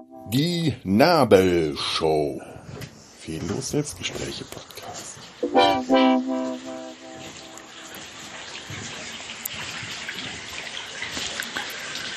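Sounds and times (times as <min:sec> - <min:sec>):
speech: 0:00.3 - 0:06.0
water splashing and trickling at saltworks graduation tower: 0:03.3 - 0:12.1.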